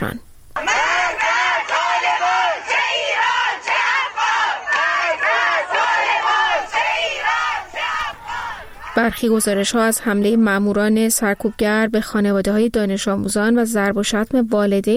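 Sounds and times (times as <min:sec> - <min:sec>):
speech: 0:00.0 - 0:00.3, 0:09.0 - 0:14.9
protesting families chanting slogans at a rally in Tehran: 0:00.6 - 0:11.8.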